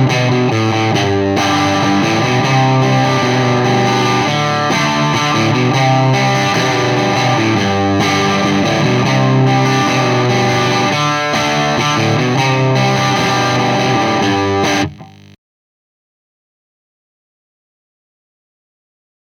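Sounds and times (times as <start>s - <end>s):
electric guitar lead on P90 bridge pickup through amplifier: 0.0s - 15.4s.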